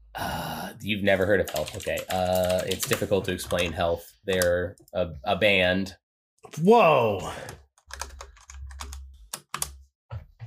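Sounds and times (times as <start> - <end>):
speech: 0.8 - 7.6
typing on a computer keyboard: 1.5 - 3.8, 7.5 - 9.8.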